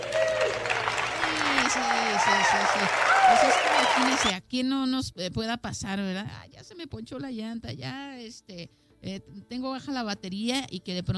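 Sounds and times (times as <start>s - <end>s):
applause: 0.0s - 4.3s
speech: 1.7s - 11.1s.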